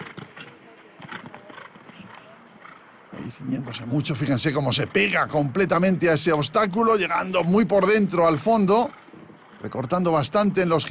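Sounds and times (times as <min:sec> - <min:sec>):
horse galloping in a show jumping round: 0:00.0 - 0:10.8
man commentating: 0:03.1 - 0:08.9, 0:09.6 - 0:10.8
speech: 0:03.2 - 0:09.0, 0:09.6 - 0:10.8.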